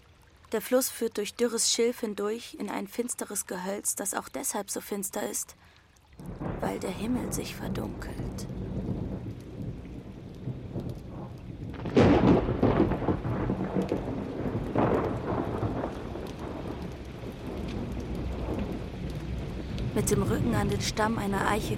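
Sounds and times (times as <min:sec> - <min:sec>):
speech: 0:00.5 - 0:08.6, 0:20.1 - 0:21.7
steady heavy rain: 0:06.2 - 0:21.7
thunder crack and rumble: 0:06.2 - 0:21.7.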